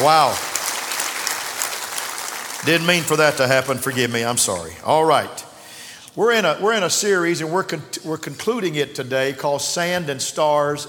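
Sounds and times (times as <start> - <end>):
speech: 0.0 - 0.5, 2.6 - 5.5, 6.2 - 10.8
audience hand clapping: 0.0 - 4.7.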